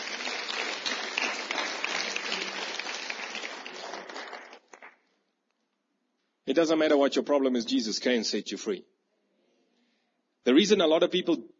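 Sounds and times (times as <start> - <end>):
audience applause: 0.0 - 5.0
speech: 6.5 - 8.9, 10.5 - 11.5.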